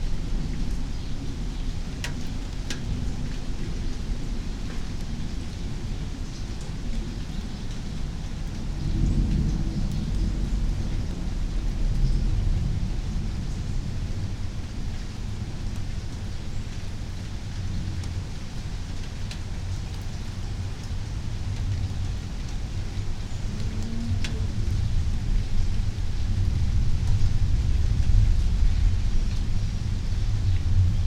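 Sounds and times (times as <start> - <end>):
suburban night rain in Meridian Idaho: 0.0 - 31.0.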